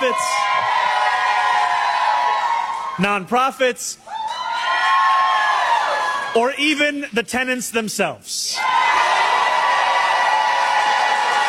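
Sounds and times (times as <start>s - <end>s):
audience cheering: 0.0s - 3.3s, 4.1s - 6.5s, 8.6s - 11.4s
speech: 3.0s - 4.1s, 6.3s - 8.7s.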